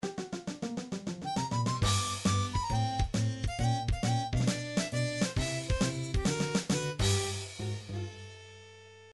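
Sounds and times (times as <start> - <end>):
game over music: 1.2 - 8.8.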